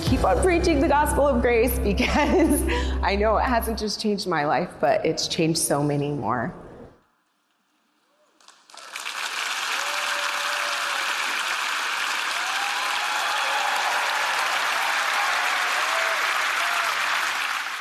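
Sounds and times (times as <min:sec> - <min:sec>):
speech: 0:00.1 - 0:06.6
crowd applauding loudly: 0:08.5 - 0:17.7.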